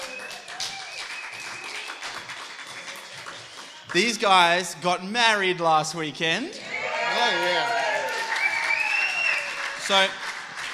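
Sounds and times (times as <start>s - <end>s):
crowd applauding: 0.0s - 4.7s, 6.8s - 10.7s
speech: 3.9s - 7.7s, 9.9s - 10.2s.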